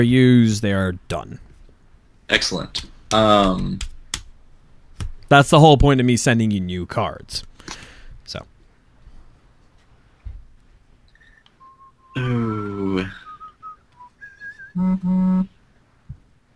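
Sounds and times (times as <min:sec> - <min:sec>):
speech: 0:00.0 - 0:01.5, 0:02.3 - 0:03.9, 0:05.3 - 0:08.5, 0:12.2 - 0:13.2, 0:14.8 - 0:15.6
buzzy phone vibration bursts: 0:14.6 - 0:15.6.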